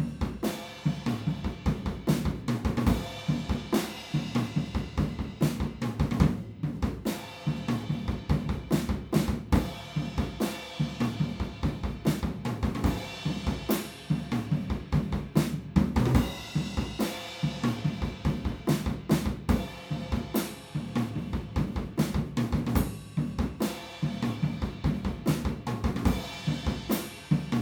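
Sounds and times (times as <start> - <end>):
drums: 0.0 - 27.5.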